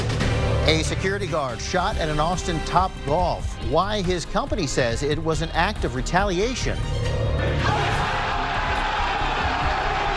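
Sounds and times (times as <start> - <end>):
speech: 0.7 - 8.0
big crowd cheering wildly: 7.4 - 10.1.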